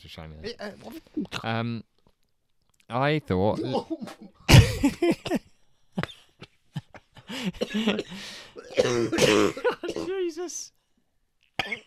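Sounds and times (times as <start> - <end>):
speech: 0.0 - 2.0, 2.9 - 6.1, 7.4 - 10.8, 11.6 - 11.8
person coughing and spluttering on a drink: 3.6 - 5.4, 7.6 - 10.2, 11.6 - 11.8
gasping wheezy coughs: 3.6 - 5.5, 7.2 - 10.3, 11.6 - 11.8.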